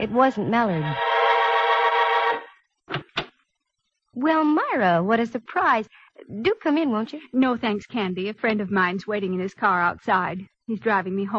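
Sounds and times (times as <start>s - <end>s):
speech: 0.0s - 1.2s, 4.2s - 11.3s
apartment door buzzer buzzing: 0.9s - 2.6s.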